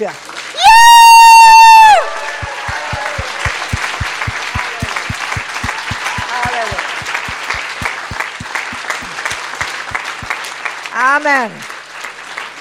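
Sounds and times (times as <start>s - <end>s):
speech: 0.0s - 0.3s, 11.1s - 11.7s
audience applause with rhythmic clapping: 0.3s - 12.5s
whoop: 0.6s - 3.7s
cheering voices: 0.6s - 8.5s.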